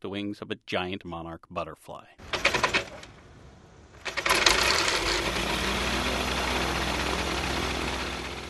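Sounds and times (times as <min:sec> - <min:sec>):
speech: 0:00.0 - 0:02.3
motorized ultralight glider engine: 0:02.3 - 0:03.2, 0:03.9 - 0:08.4.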